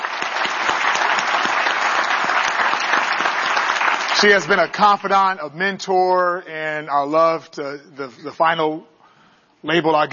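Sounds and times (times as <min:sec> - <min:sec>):
audience applause: 0:00.0 - 0:04.8
speech: 0:04.2 - 0:08.9, 0:09.6 - 0:10.1.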